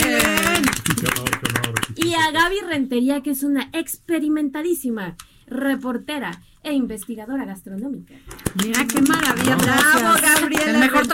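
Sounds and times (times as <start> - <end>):
applause: 0.0 - 2.3, 8.3 - 11.1
speech: 2.1 - 11.1.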